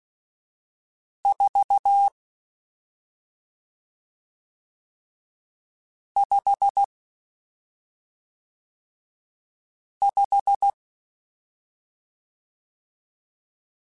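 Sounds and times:
Morse code CW code groups: 0:01.3 - 0:02.1, 0:06.2 - 0:06.9, 0:10.1 - 0:10.7.

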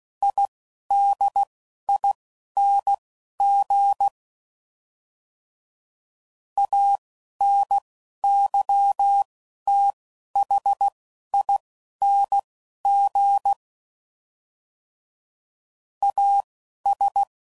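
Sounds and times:
Morse code groups at 10 WPM: 0:00.2 - 0:04.1, 0:06.6 - 0:13.6, 0:16.0 - 0:17.3.

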